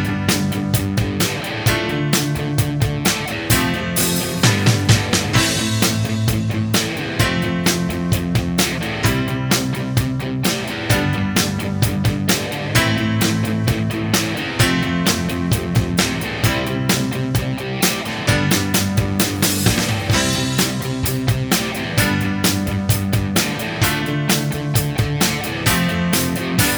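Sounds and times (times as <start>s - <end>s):
bass: 0.0s - 26.7s.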